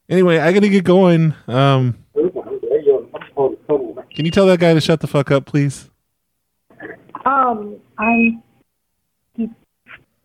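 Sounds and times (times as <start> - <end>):
speech: 0.1 - 2.0, 4.2 - 5.9, 7.3 - 8.5, 9.4 - 9.6
beeping on a phone call: 2.3 - 4.5, 8.0 - 8.5.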